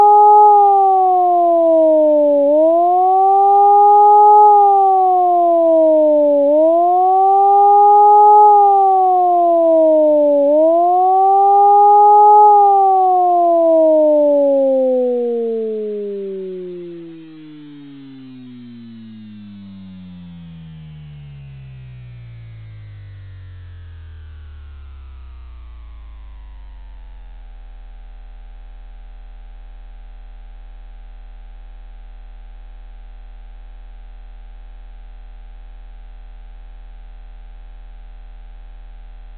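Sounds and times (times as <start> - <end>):
warning signal: 0.0 - 19.5.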